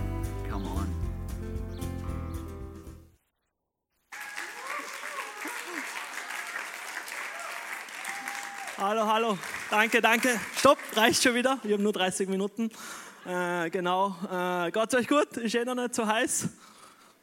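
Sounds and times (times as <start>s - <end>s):
music: 0.0s - 3.2s
church congregation applauding a guest on stage: 4.1s - 11.8s
speech: 8.8s - 16.7s.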